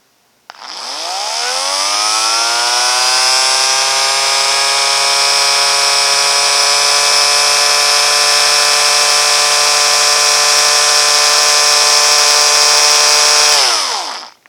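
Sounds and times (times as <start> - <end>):
motor running at low rpm: 0.5 - 14.4.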